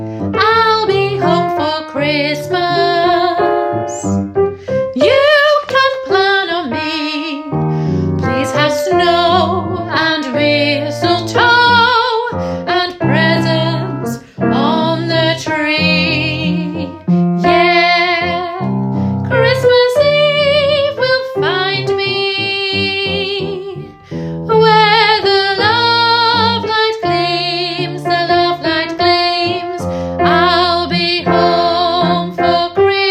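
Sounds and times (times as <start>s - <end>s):
alto voice singing: 0.3s - 33.0s.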